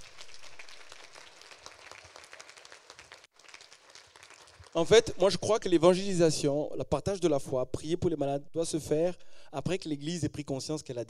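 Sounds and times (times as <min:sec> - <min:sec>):
audience applauding: 0:00.0 - 0:05.1
speech: 0:04.7 - 0:11.0.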